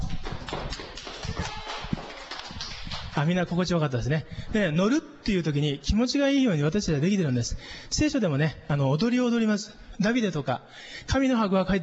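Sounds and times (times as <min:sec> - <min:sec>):
audience applause: 0:00.0 - 0:03.4
speech: 0:03.2 - 0:11.8.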